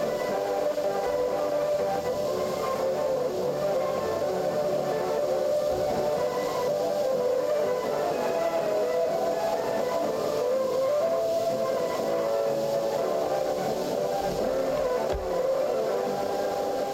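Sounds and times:
jamming music on the radio: 0.0 - 16.9.

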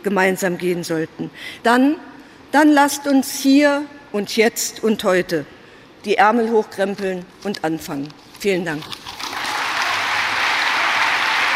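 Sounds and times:
speech: 0.0 - 9.1
party conference delegates applauding after the party leader's speech: 9.1 - 11.5.

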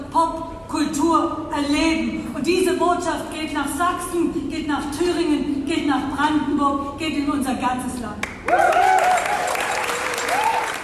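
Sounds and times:
speech: 1.1 - 9.0
deafening audience applause at the opening of a pop culture event: 8.2 - 10.8
people cheering: 8.4 - 10.8.

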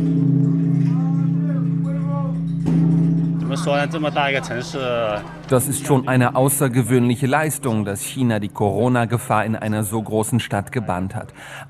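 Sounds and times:
huge bell struck with hanging wooden log: 0.0 - 9.3
speech: 3.6 - 11.6.

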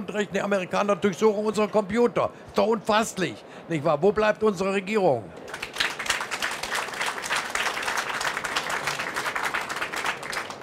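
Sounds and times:
speech: 0.1 - 5.7
audience applause: 5.5 - 10.6.

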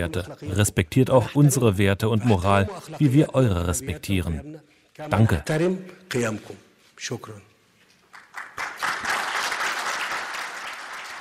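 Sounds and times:
speech: 0.0 - 7.5
Egyptian journalists applauding at a press conference: 8.1 - 11.1.

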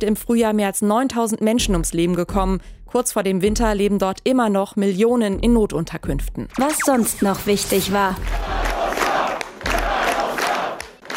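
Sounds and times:
speech: 0.0 - 8.7
crowd of party supporters cheering and shouting: 8.2 - 11.1.

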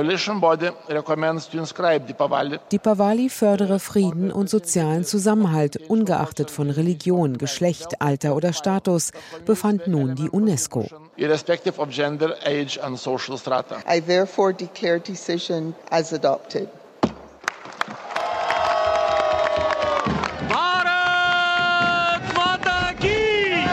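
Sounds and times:
speech: 0.0 - 16.8
sharp knock: 17.0 - 17.4
delegation cheering and shouting in jubilation: 18.0 - 23.7
lively overlapping voices: 18.2 - 23.7.

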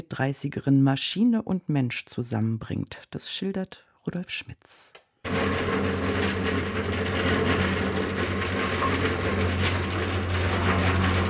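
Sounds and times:
speech: 0.0 - 7.8
concrete mixers grinding: 5.3 - 11.2.

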